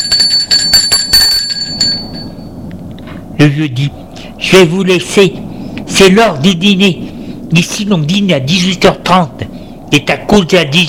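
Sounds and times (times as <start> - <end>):
bell ringing: 0.0 - 2.6
speech: 3.4 - 10.8.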